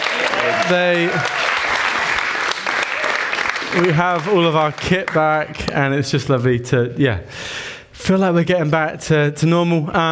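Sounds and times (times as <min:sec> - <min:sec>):
big round of applause: 0:00.0 - 0:05.5
speech: 0:00.7 - 0:01.4, 0:03.7 - 0:10.1.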